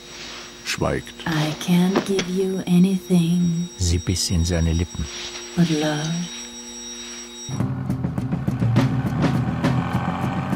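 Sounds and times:
speech: 0.8 - 6.4, 7.5 - 7.7
car engine running while driving: 7.6 - 10.5.

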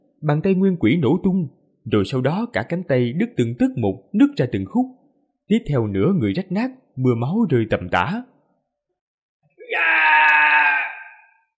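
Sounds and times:
speech: 0.2 - 8.3
man's agonized scream of pain: 9.6 - 11.4.

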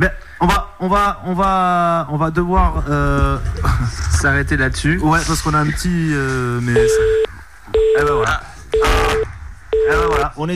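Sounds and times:
speech: 0.0 - 7.1, 8.0 - 9.2, 9.9 - 10.5
telephone busy tone after a dropped call: 6.8 - 10.2.

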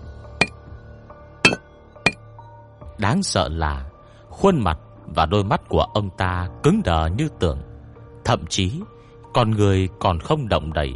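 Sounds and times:
chisel striking a stone stele: 1.5 - 2.2
speech: 3.0 - 10.9.

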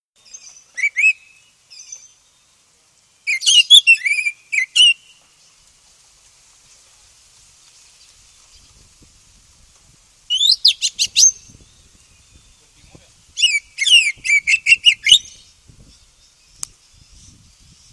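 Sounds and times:
Oriental magpie-robin song: 0.2 - 2.5, 3.2 - 5.2, 10.3 - 17.9.

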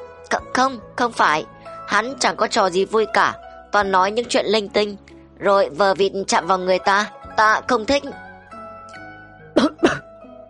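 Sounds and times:
speech: 0.3 - 8.2
coughing: 9.6 - 10.2.

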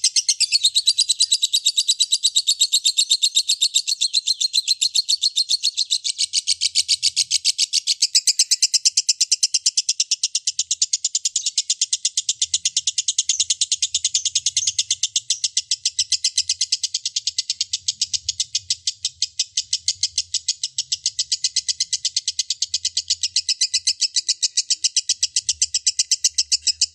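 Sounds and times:
lovebird singing a long sustained trill: 0.0 - 26.9.

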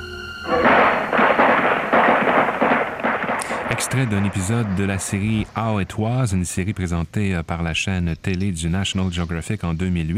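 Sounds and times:
volley of rifle gunfire at Kent State University in 1970: 0.5 - 5.5
speech: 3.9 - 10.1.

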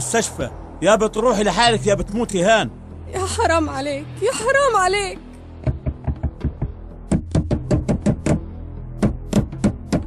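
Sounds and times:
speech: 0.1 - 5.2
knocking on a door: 5.6 - 10.0.

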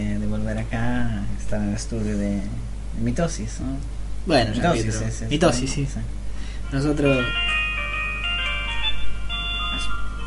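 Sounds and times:
speech: 0.5 - 7.5
telephone ringing: 7.0 - 10.2.

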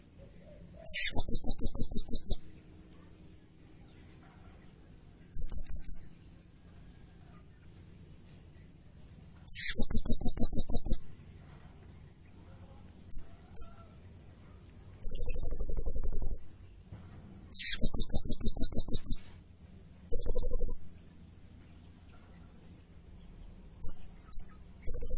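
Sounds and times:
blue-crowned hanging parrot giving shrill high chirps: 0.8 - 2.5, 5.3 - 6.1, 9.5 - 11.1, 13.1 - 13.8, 15.0 - 16.5, 17.5 - 19.3, 20.1 - 20.9, 23.8 - 25.1.

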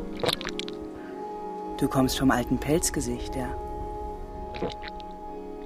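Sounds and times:
person drinking water from a pond: 0.2 - 0.8, 4.5 - 5.1
speech: 1.8 - 3.7, 4.6 - 5.0.

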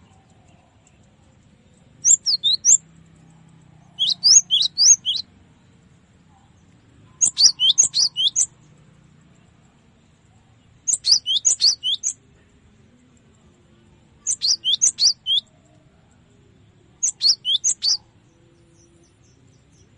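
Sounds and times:
cinereous tit song for training cage birds: 4.0 - 5.3, 7.2 - 8.5, 10.9 - 12.2, 17.0 - 18.0.

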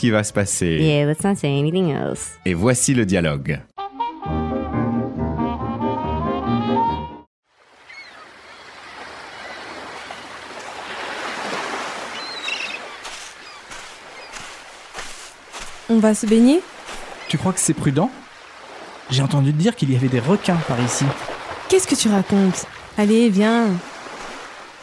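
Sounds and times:
speech: 0.0 - 4.4, 16.0 - 16.7, 17.3 - 18.2, 19.1 - 23.9
tonal music: 3.8 - 7.3
sea waves washing onto a shore: 7.5 - 24.8.

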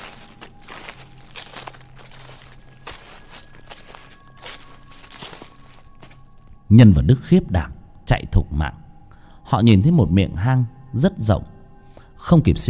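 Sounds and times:
slow footsteps crunching through dry leaves: 0.0 - 6.4
speech: 6.7 - 8.8, 9.5 - 11.6, 12.3 - 12.6.

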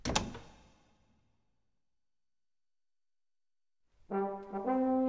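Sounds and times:
bedroom door quietly closed and locked: 0.0 - 0.7.

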